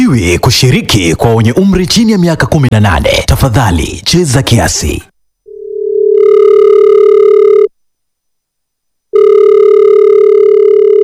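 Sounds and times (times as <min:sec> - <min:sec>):
speech: 0:00.1 - 0:05.1
telephone ringing tone: 0:05.5 - 0:07.7, 0:09.1 - 0:11.0.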